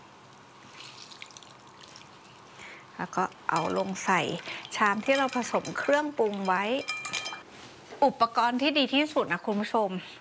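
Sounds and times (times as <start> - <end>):
water dribbling from squeezed blanched spinach: 0.3 - 7.4
speech: 3.0 - 7.0, 8.0 - 10.1.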